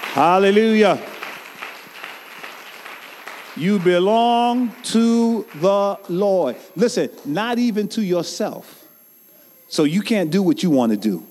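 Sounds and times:
audience clapping hands: 0:00.0 - 0:06.4
speech: 0:00.2 - 0:01.1, 0:03.6 - 0:08.8, 0:09.7 - 0:11.2.

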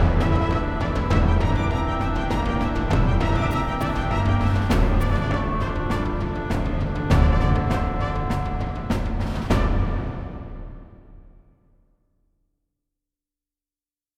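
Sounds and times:
epic video game fight music: 0:00.0 - 0:10.9.

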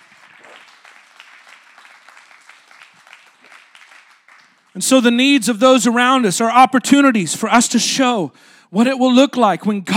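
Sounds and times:
audience clapping hands: 0:00.0 - 0:04.8
speech: 0:04.8 - 0:09.9.

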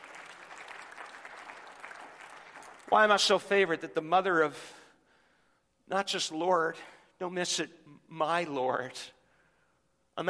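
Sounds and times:
applause from a large group: 0:00.0 - 0:03.4
speech: 0:02.9 - 0:04.8, 0:05.9 - 0:09.2.

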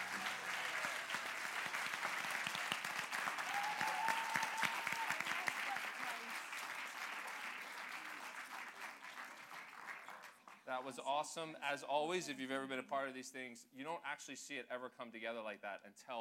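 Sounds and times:
audience round of applause: 0:00.0 - 0:10.7
speech: 0:10.7 - 0:16.1.

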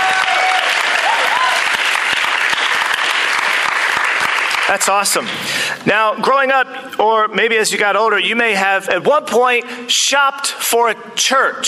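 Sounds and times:
audience applauding: 0:00.0 - 0:05.3
speech: 0:04.7 - 0:11.6.

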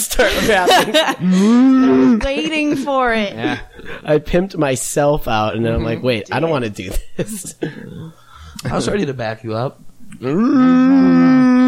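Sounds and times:
laughter: 0:00.0 - 0:04.2, 0:06.3 - 0:08.0
speech: 0:00.2 - 0:11.5
person imitating whale with moaning hum: 0:01.2 - 0:02.3, 0:10.2 - 0:11.6.

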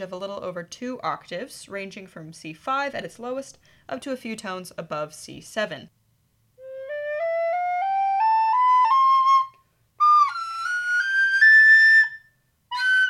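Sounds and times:
speech: 0:00.0 - 0:06.0
soprano recorder playing high notes: 0:06.6 - 0:13.0.

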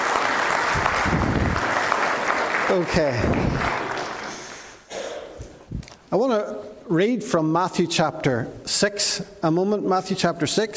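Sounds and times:
audience applause: 0:00.0 - 0:04.8
speech: 0:02.7 - 0:03.7, 0:06.1 - 0:10.7.

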